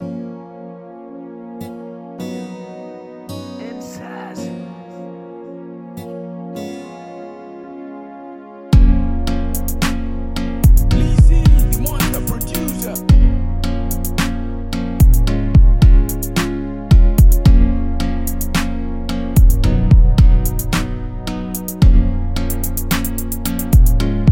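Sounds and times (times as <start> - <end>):
free trap hip hop beat: 3.6 - 5.6, 8.8 - 24.3.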